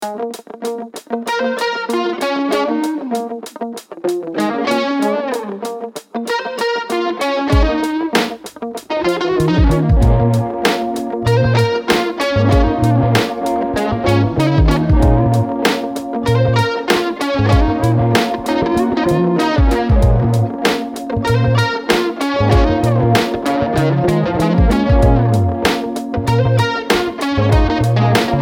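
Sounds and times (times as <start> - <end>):
funk lounge music: 0.0 - 28.4.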